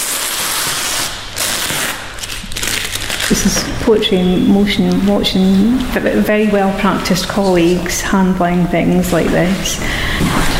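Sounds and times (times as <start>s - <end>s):
paper tape being peeled during unwrapping: 0.0s - 3.8s
speech: 3.4s - 10.5s.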